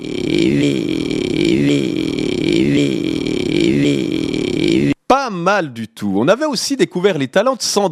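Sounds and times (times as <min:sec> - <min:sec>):
voice imitating an idling rally car: 0:00.0 - 0:05.0
speech: 0:05.5 - 0:07.8.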